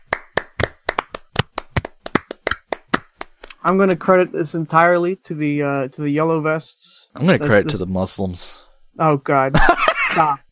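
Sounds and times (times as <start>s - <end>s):
hands clapping: 0.0s - 3.8s
speech: 3.6s - 10.4s.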